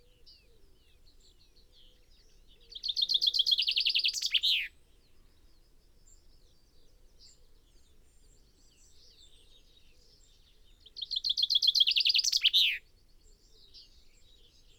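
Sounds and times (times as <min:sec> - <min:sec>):
common chaffinch Fringilla coelebs singing: 0:02.4 - 0:04.7, 0:10.9 - 0:12.8.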